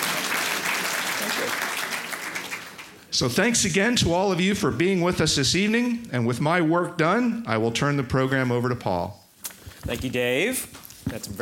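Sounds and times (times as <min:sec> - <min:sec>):
audience applause: 0:00.0 - 0:03.1
speech: 0:01.3 - 0:01.7, 0:03.2 - 0:09.2, 0:09.8 - 0:11.3.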